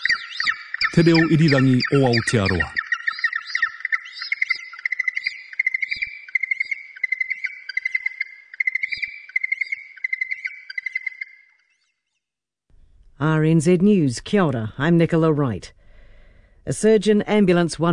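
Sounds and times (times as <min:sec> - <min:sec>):
yellow-eyed penguin calling: 0:00.0 - 0:11.3
speech: 0:01.0 - 0:02.8, 0:13.2 - 0:15.8, 0:16.7 - 0:17.9.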